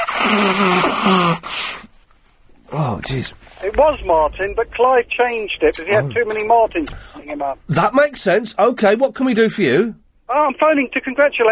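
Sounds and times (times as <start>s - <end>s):
person blowing nose: 0.0s - 2.0s
speech: 0.2s - 1.5s, 2.7s - 11.5s.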